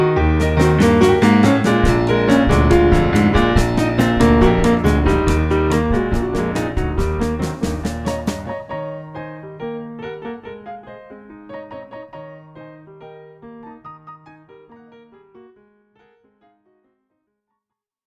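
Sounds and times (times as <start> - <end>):
stomp: 0.2 - 8.7.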